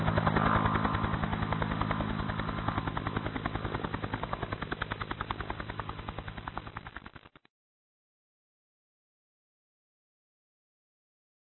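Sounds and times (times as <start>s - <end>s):
helicopter: 0.0s - 7.5s.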